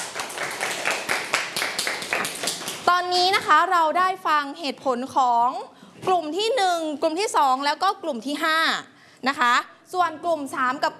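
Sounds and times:
classroom applause: 0.0 - 2.9
speech: 3.1 - 10.9.

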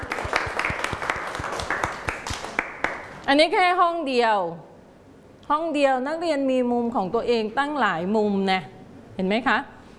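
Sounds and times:
children clapping hands: 0.0 - 3.1
speech: 3.3 - 4.7, 5.5 - 9.7.

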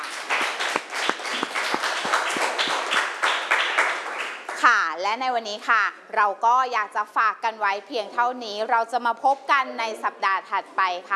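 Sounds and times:
students clapping hands: 0.0 - 4.7
speech: 5.1 - 11.1.

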